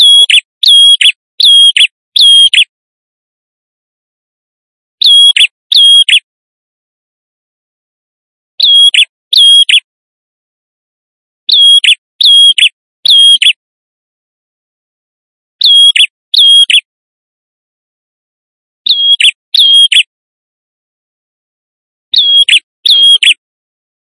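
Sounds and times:
male prinia in vigorous song used as a lure: 0.0s - 2.7s, 5.0s - 6.2s, 8.6s - 9.9s, 11.5s - 13.6s, 15.6s - 16.9s, 18.9s - 20.1s, 22.1s - 23.4s.

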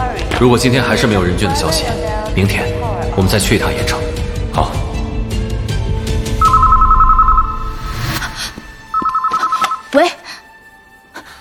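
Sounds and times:
low rumbling background: 0.0s - 8.9s
speech: 0.4s - 4.8s
telephone ringing with electronic trill: 6.4s - 8.2s, 8.8s - 10.0s.

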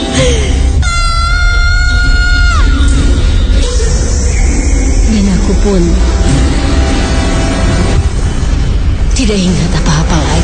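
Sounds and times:
rumbling noise: 0.0s - 10.4s
person screaming in terror: 0.2s - 3.0s
speech: 5.7s - 6.4s, 9.3s - 10.1s.

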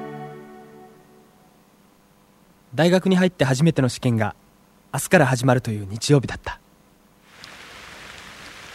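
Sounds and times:
speech: 2.7s - 6.6s
rain falling: 7.3s - 8.7s.

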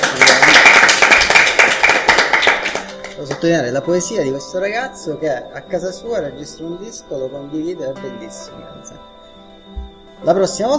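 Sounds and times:
small group clapping at a live dinner show: 0.0s - 3.6s
speech: 3.4s - 9.2s, 10.2s - 10.7s.

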